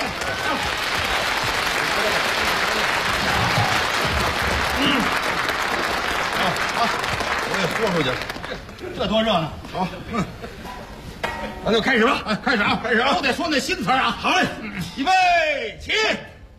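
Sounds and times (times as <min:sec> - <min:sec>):
audience applause welcoming a performer at a variety show: 0:00.0 - 0:08.8
speech: 0:07.8 - 0:10.8, 0:11.6 - 0:16.3.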